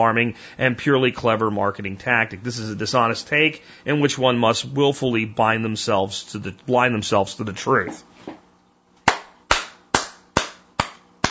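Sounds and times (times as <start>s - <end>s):
speech: 0.0s - 8.4s
one person clapping hands: 9.1s - 11.2s.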